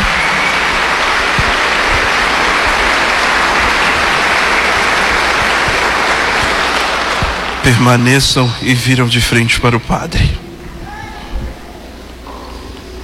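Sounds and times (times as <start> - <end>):
crowd clapping: 0.0 - 10.3
speech: 7.6 - 10.4.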